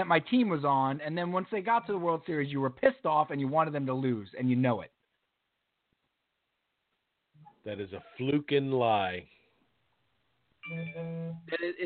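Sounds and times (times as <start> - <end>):
speech: 0.0 - 5.0, 7.6 - 9.3, 10.7 - 11.8
mobile phone vibrating: 10.7 - 11.5.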